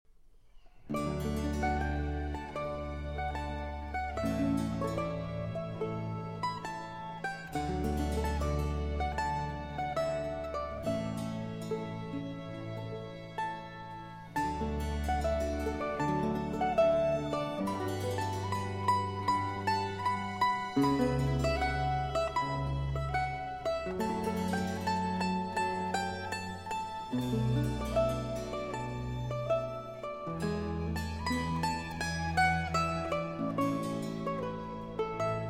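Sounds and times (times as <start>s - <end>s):
concerto in D major slow movement: 0.7s - 35.4s.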